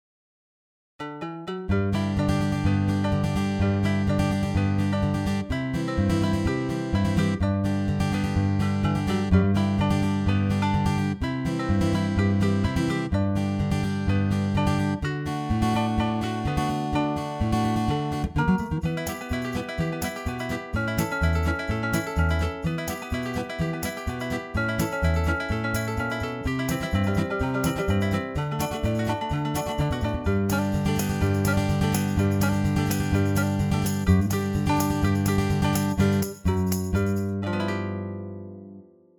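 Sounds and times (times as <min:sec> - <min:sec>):
bluegrass acoustic guitar strumming: 0:01.2 - 0:39.0.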